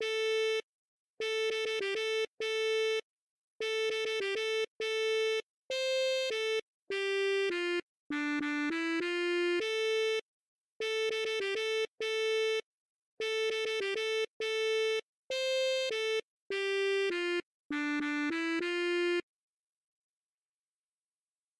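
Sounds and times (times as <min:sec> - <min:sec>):
saxophone: 0:01.2 - 0:03.0, 0:03.6 - 0:10.2, 0:10.8 - 0:12.6, 0:13.2 - 0:19.3.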